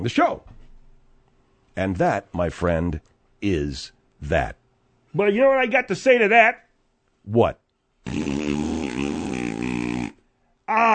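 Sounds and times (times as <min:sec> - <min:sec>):
speech: 0:00.0 - 0:00.5, 0:01.8 - 0:04.6, 0:05.2 - 0:06.6, 0:07.2 - 0:08.4
fart: 0:08.0 - 0:10.2.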